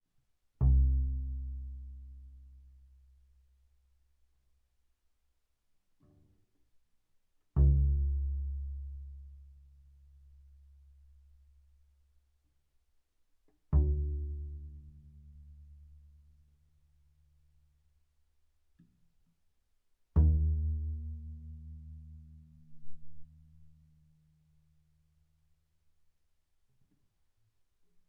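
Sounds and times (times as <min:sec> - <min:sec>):
double bass pizzicato fortissimo on the A string: 0:00.6 - 0:03.8, 0:07.6 - 0:12.1, 0:13.6 - 0:16.5, 0:20.1 - 0:24.4.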